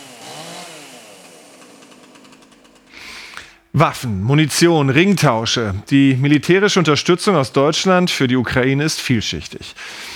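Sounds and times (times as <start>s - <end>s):
chainsaw engine revving: 0.0s - 3.3s
speech: 3.8s - 10.1s.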